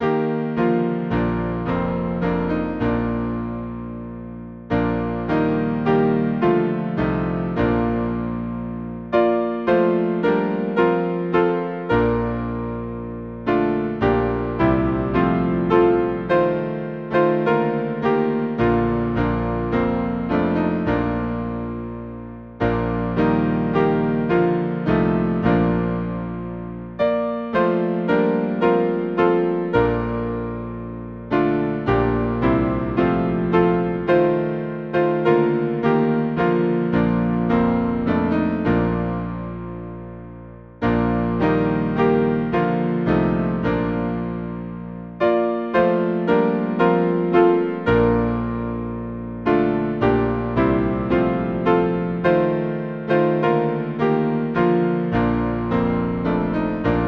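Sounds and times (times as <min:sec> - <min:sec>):
hymn on piano: 0:00.0 - 0:57.0.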